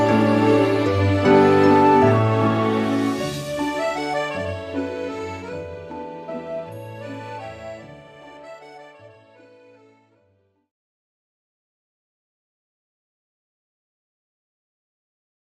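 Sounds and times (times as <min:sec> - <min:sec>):
romantic French music: 0:00.0 - 0:10.4.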